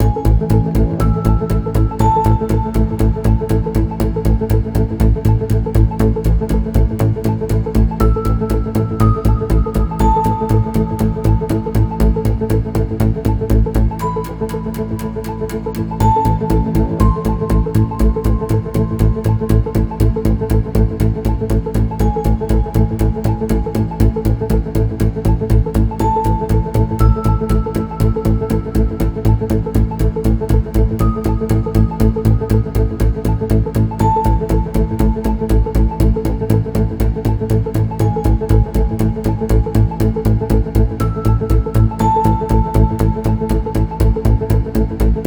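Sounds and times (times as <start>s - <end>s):
tense music: 0.0s - 45.2s.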